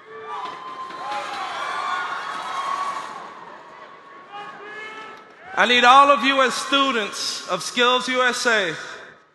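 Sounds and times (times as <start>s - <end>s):
large crowd cheering and whooping in a standing ovation: 0.0s - 4.6s
speech: 5.6s - 8.9s.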